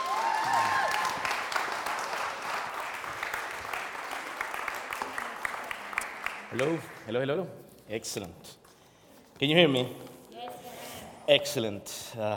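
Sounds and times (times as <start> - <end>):
audience applause welcoming a speaker: 0.0 - 7.0
speech: 6.5 - 8.6, 9.4 - 10.1, 11.3 - 12.3.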